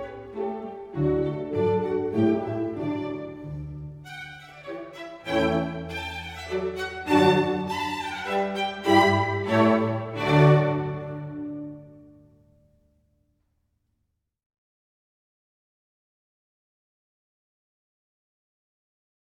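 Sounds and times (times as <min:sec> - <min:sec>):
classical divertimento in D major: 0:00.0 - 0:13.0.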